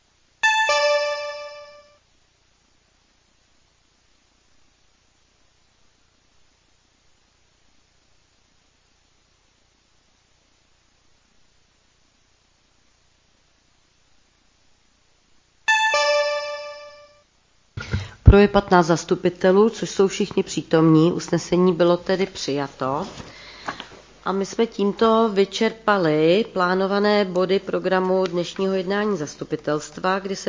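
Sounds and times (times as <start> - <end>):
electronic chime signalling a city council vote: 0.4 - 2.0, 15.7 - 17.2
speech: 18.3 - 23.4, 24.2 - 30.4.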